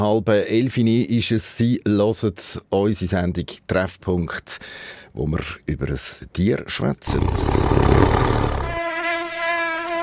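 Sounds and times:
speech: 0.0 - 8.3
tiger mosquito buzzing: 7.1 - 10.0.

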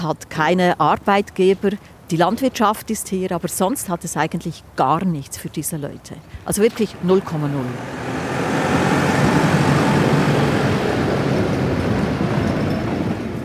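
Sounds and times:
speech: 0.0 - 8.4
tractor driving by: 6.7 - 13.4.

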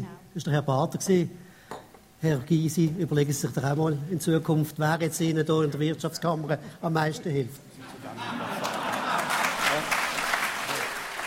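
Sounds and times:
speech: 0.4 - 1.4, 2.2 - 8.4
laughter: 7.8 - 9.9
audience applauding in a gym hall: 8.4 - 11.2.

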